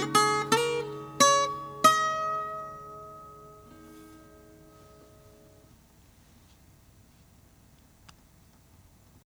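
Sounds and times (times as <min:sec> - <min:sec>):
guitars: 0:00.0 - 0:05.8.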